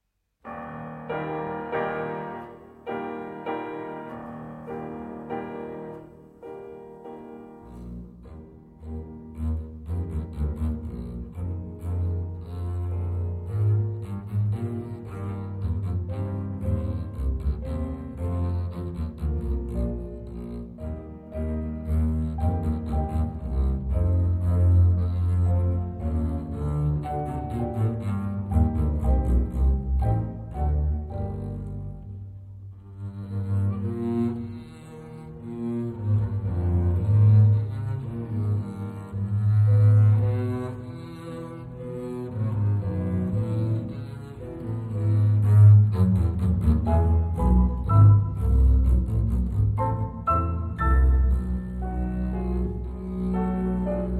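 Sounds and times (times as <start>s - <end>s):
double bass: 0.2s - 54.1s.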